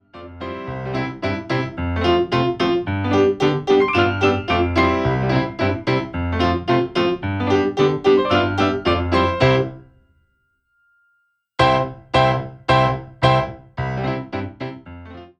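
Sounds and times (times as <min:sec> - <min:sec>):
instrumental music: 0:00.1 - 0:10.5, 0:11.6 - 0:15.3.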